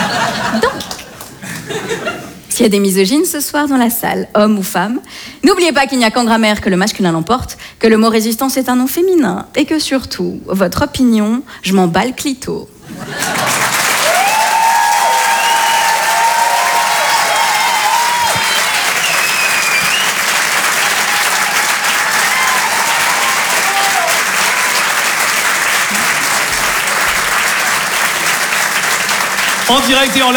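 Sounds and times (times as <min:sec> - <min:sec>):
laughter: 0:00.0 - 0:02.5, 0:12.8 - 0:14.0
speech: 0:02.6 - 0:13.6, 0:29.7 - 0:30.3
audience applause: 0:13.1 - 0:30.3
whistles and shouts from crowd: 0:17.3 - 0:20.3.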